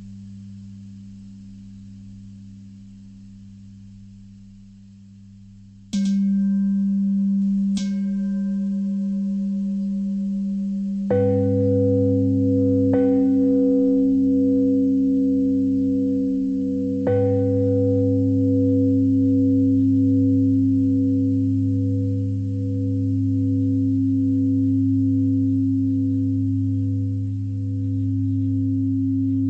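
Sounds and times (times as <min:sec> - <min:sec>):
pentatonic bell melody: 0:06.0 - 0:29.4.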